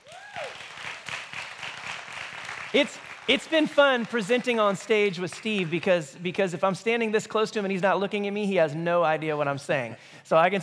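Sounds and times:
audience round of applause: 0.0 - 6.0
speech: 2.7 - 10.6.

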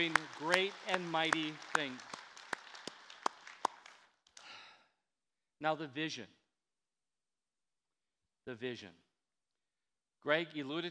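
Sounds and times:
speech: 0.0 - 2.2, 5.6 - 6.4, 8.5 - 9.0, 10.2 - 10.8
audience applauding: 0.0 - 4.5.

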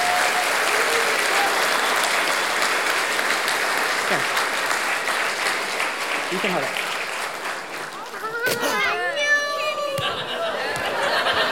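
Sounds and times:
audience applause: 0.0 - 9.4, 10.2 - 11.5
speech: 6.3 - 6.8
laughter: 8.3 - 11.5.

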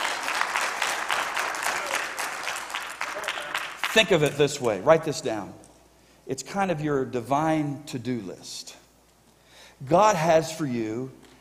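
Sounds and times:
audience clapping: 0.0 - 4.5
speech: 3.9 - 5.6, 6.3 - 8.8, 9.8 - 11.2.

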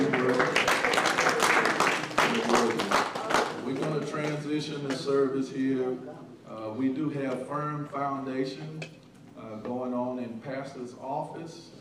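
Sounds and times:
audience clapping hands: 0.0 - 4.5
speech: 5.3 - 11.8.

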